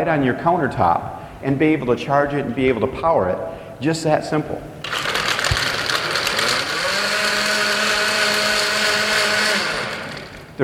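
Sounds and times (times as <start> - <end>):
speech: 0.0 - 5.0
cordless countertop blender motor running: 4.9 - 10.6.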